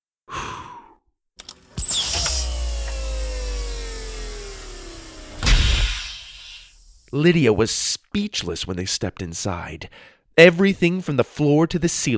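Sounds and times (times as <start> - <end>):
golden door mechanism opening: 1.4 - 7.1
speech: 7.1 - 12.1.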